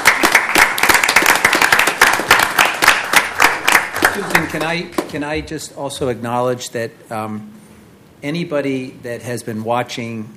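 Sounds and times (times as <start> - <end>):
applause for staff: 0.0 - 5.1
speech: 4.5 - 7.6, 8.2 - 10.3.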